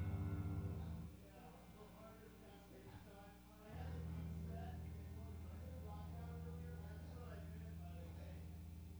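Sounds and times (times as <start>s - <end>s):
bass guitar recorded in mono through a dynamic microphone: 0.0s - 1.1s, 3.8s - 8.9s.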